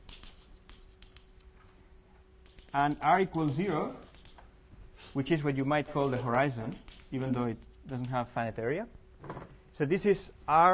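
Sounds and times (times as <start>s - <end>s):
scratchy drawing strokes on a board: 0.0s - 1.5s, 2.4s - 4.5s, 5.2s - 8.3s
speech: 2.8s - 4.1s, 5.2s - 10.7s.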